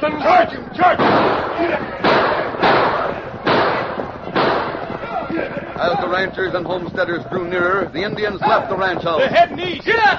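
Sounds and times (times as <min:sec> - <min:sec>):
speech: 0:00.0 - 0:02.0, 0:05.8 - 0:10.1
gunfire in a Western radio drama during a horseback chase: 0:00.8 - 0:05.6.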